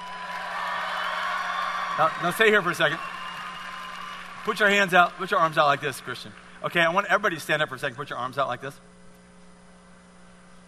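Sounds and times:
audience clapping: 0.0 - 7.4
speech: 2.0 - 3.2, 4.4 - 8.9.

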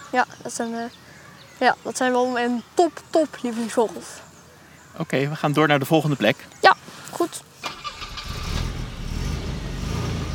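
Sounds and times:
speech: 0.1 - 4.3, 5.0 - 6.6, 7.2 - 7.5
car engine cranking and starting: 7.6 - 10.3.

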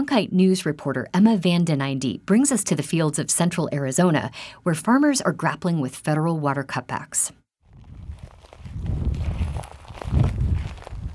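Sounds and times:
speech: 0.1 - 7.4
footsteps crunching through a dry alfalfa field: 7.6 - 11.1.

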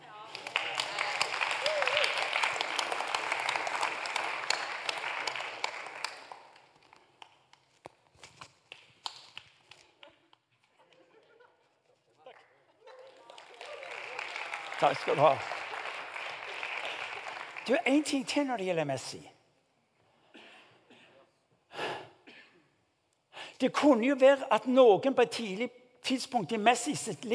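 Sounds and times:
audience applause: 0.3 - 6.7, 12.9 - 18.4
speech: 14.8 - 15.6, 17.7 - 19.3, 23.6 - 27.3.

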